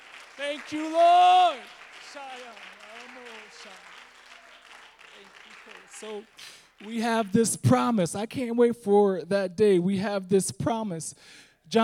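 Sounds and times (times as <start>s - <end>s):
audience clapping hands: 0.0s - 8.0s
speech: 0.4s - 4.0s, 5.2s - 11.8s.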